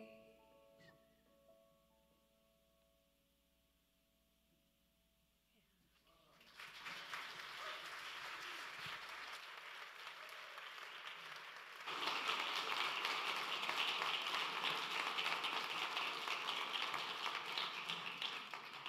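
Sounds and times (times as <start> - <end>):
audience applause as speaker comes on stage: 6.3 - 18.8.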